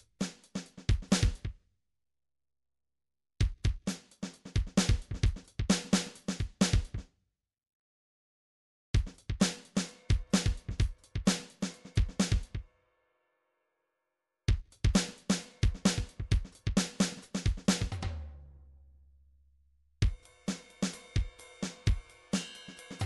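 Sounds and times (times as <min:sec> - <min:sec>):
MIDI drum pattern: 0:00.0 - 0:01.5, 0:03.4 - 0:07.0, 0:09.0 - 0:12.6, 0:14.5 - 0:18.2, 0:20.0 - 0:23.0.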